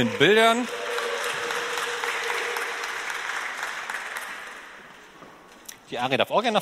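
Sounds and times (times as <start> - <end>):
speech: 0.0 - 0.9, 5.9 - 6.6
audience applause: 0.0 - 5.2.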